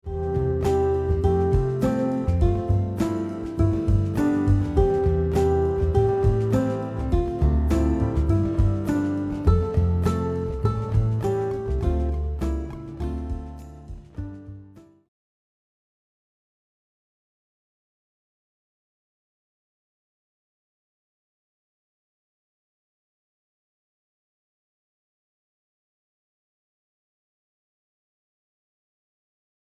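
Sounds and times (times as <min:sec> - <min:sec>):
guitar: 0:00.0 - 0:15.0.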